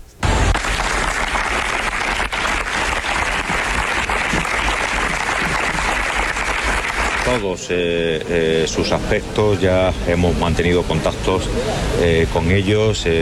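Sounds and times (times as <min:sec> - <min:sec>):
applause in memory of victim: 0:00.2 - 0:07.4
speech: 0:07.4 - 0:13.1.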